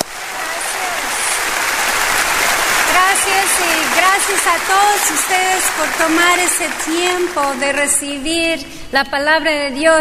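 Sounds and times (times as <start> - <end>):
welcome applause from audience: 0.0 - 8.6
speech: 3.3 - 9.9.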